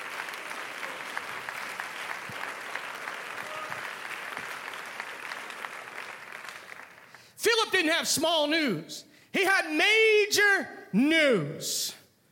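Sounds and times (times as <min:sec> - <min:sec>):
audience clapping hands: 0:00.0 - 0:07.4
speech: 0:07.7 - 0:12.0.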